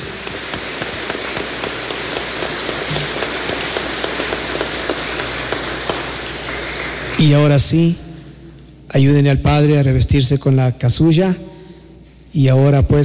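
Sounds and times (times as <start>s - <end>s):
congregation applause in a church for a priest being installed: 0.0s - 7.8s
speech: 7.2s - 8.0s, 8.9s - 11.5s, 12.3s - 13.0s.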